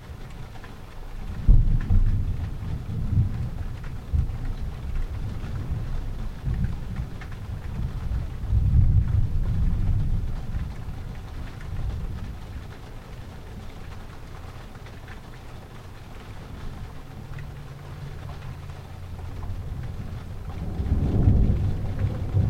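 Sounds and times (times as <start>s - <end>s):
thunder: 1.4s - 11.1s, 19.4s - 22.4s.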